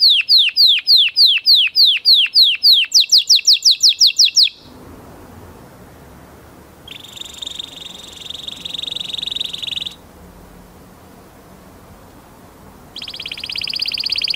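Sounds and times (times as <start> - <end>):
canary singing: 0.0 - 4.7, 6.8 - 10.0, 12.9 - 14.3.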